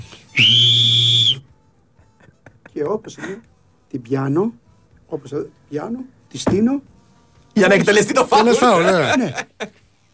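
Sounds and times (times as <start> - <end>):
speech: 0.4 - 0.9, 2.8 - 6.9, 7.6 - 9.8
referee's whistle blowing: 0.4 - 1.4.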